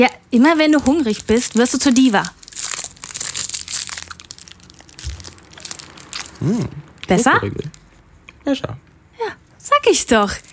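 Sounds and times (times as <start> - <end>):
speech: 0.0 - 2.4, 6.4 - 7.8, 8.4 - 10.5
chocolate bar wrapper crinkling and being opened: 0.4 - 7.9, 10.2 - 10.5.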